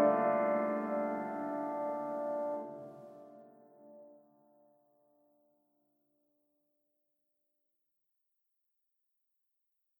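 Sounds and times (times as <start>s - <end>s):
piano: 0.0s - 4.2s.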